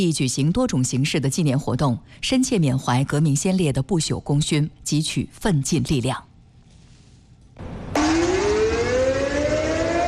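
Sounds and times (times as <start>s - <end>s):
speech: 0.0s - 6.3s
noise: 0.0s - 8.0s
air raid siren test: 7.6s - 10.0s.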